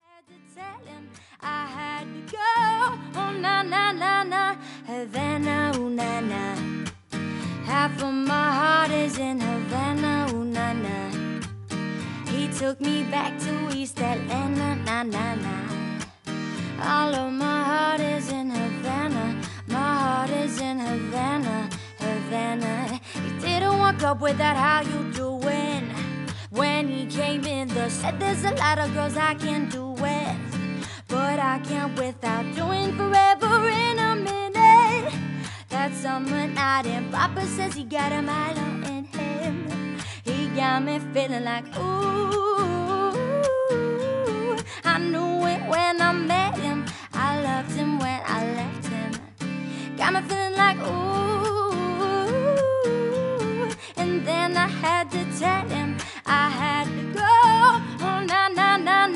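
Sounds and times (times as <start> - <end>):
acoustic music: 0.3 - 59.1.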